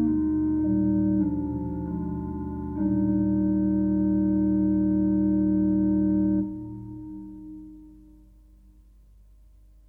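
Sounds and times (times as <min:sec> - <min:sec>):
organ: 0:00.0 - 0:07.9.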